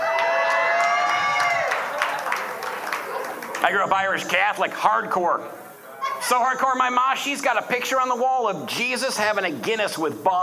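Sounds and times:
audience cheering: 0:00.0 - 0:04.3
audience clapping: 0:00.0 - 0:05.2
speech: 0:03.6 - 0:05.6, 0:06.2 - 0:10.4.

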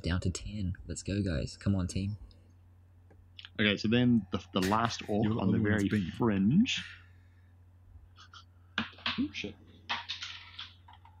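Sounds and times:
speech: 0:00.0 - 0:02.3, 0:03.6 - 0:07.0, 0:09.2 - 0:09.6
dice falling on the floor: 0:09.9 - 0:11.1.

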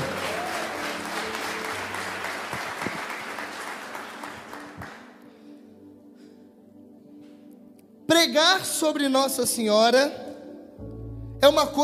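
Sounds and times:
audience applause: 0:00.0 - 0:05.2
speech: 0:08.3 - 0:10.2, 0:11.4 - 0:11.8.

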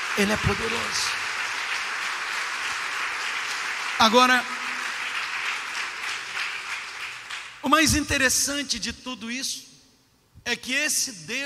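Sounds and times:
audience applause: 0:00.0 - 0:07.6
speech: 0:00.2 - 0:01.3, 0:04.0 - 0:04.6, 0:07.6 - 0:09.7, 0:10.4 - 0:11.4.

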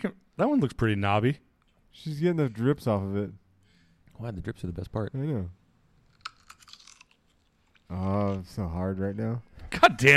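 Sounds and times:
speech: 0:00.0 - 0:03.4, 0:04.2 - 0:05.6, 0:07.9 - 0:10.1
crisp bite into a pickle and crunchy chewing: 0:06.0 - 0:08.4.

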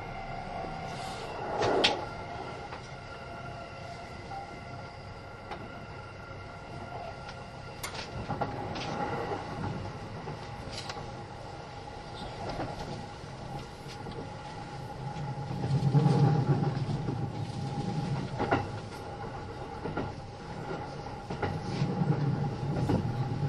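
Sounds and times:
Kintetsu 80000 series Hinotori limited express running rumble: 0:00.0 - 0:23.4
rail clacks: 0:07.2 - 0:23.4.

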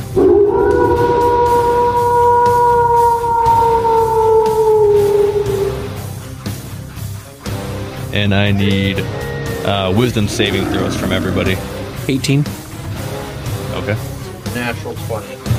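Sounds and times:
wolves howling: 0:00.0 - 0:06.1, 0:09.0 - 0:11.7
speech: 0:08.2 - 0:12.6, 0:13.8 - 0:15.5.

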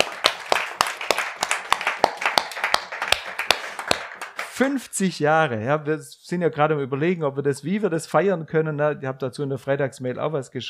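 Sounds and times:
audience applause: 0:00.0 - 0:04.7
speech: 0:04.6 - 0:10.6.

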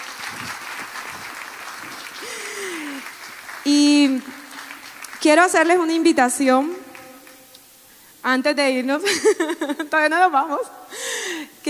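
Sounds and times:
audience applause: 0:00.0 - 0:06.0, 0:06.6 - 0:07.4
speech: 0:05.3 - 0:06.8, 0:08.2 - 0:11.6.

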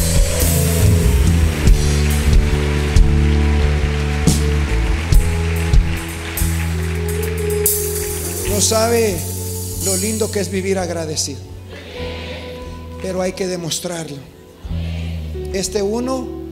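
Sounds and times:
loud applause: 0:00.0 - 0:09.3
speech: 0:08.6 - 0:11.5, 0:13.0 - 0:14.4, 0:15.5 - 0:16.4.

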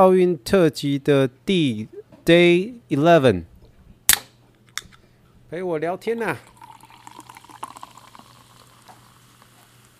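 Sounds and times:
speech: 0:00.0 - 0:03.5, 0:05.5 - 0:06.5
sparkling water being poured: 0:06.4 - 0:09.9.

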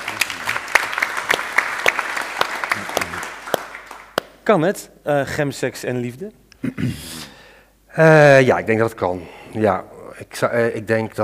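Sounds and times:
audience applause: 0:00.0 - 0:04.3
speech: 0:04.5 - 0:07.2, 0:07.9 - 0:11.2.

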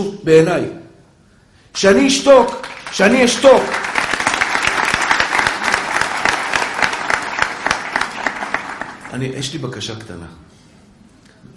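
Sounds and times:
speech: 0:00.0 - 0:00.8, 0:01.8 - 0:03.9, 0:09.1 - 0:10.5
audience applause: 0:02.6 - 0:09.4.

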